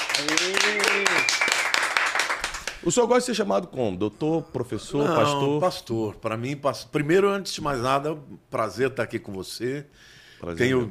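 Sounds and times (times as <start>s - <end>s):
audience applause: 0.0s - 2.8s
speech: 0.2s - 1.1s, 2.8s - 10.8s.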